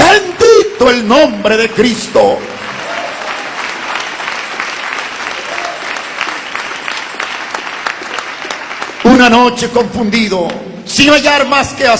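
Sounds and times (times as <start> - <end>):
speech: 0.8 - 2.6, 9.2 - 11.9
audience applause: 2.2 - 9.4.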